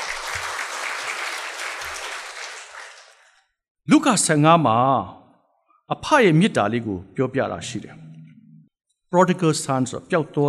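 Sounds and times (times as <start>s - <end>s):
audience applause at a church sermon: 0.0s - 3.4s
speech: 3.9s - 5.2s, 5.9s - 8.0s, 9.1s - 10.4s.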